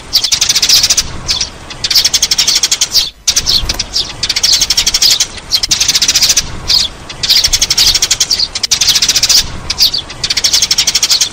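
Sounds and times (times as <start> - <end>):
sparrow chatter: 0.0 - 11.3.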